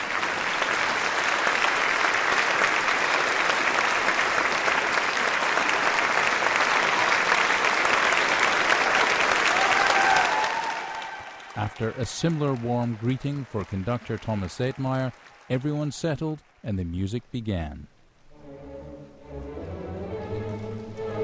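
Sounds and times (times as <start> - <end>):
concert audience standing ovation applause: 0.0 - 17.5
cheers and whistles: 8.8 - 11.6
speech: 11.8 - 17.9.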